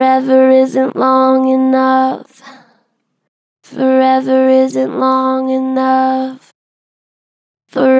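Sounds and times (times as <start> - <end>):
gentle flat-pitch vocals: 0.0 - 3.0, 3.7 - 6.6, 7.7 - 7.9.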